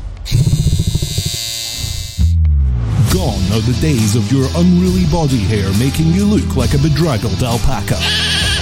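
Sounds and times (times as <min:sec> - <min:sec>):
electric hair clipper buzzing: 0:00.2 - 0:02.4
speech: 0:03.6 - 0:08.4.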